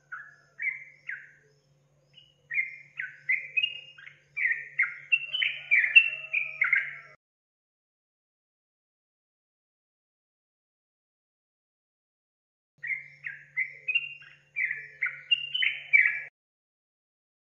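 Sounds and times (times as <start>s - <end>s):
Yellow-vented Bulbul song: 0.0s - 7.2s, 12.8s - 16.3s.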